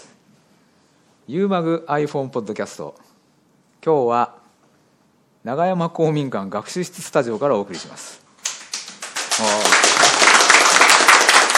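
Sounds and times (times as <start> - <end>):
speech: 1.3 - 3.1, 3.8 - 4.4, 5.4 - 8.2
applause: 8.4 - 11.5.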